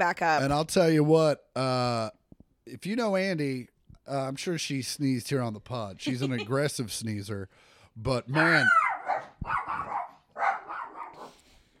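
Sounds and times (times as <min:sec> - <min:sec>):
speech: 0:00.0 - 0:08.8
dogs barking: 0:08.6 - 0:11.4.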